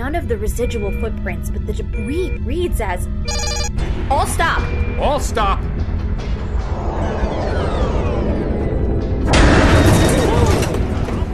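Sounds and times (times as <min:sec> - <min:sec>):
speech: 0:00.1 - 0:05.8
mine explosion set off by a proximity trigger striking a ship: 0:07.0 - 0:11.3.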